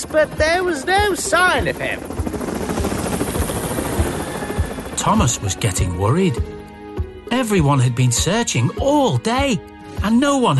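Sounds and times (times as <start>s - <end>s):
helicopter flying overhead: 0.0s - 10.5s
speech: 0.1s - 2.3s, 5.0s - 6.6s, 7.3s - 10.5s.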